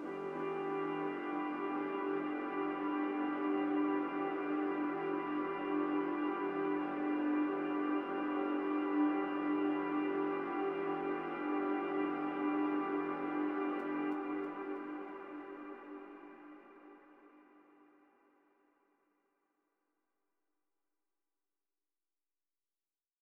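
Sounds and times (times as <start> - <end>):
long synth pad in C major: 0.0 - 17.4.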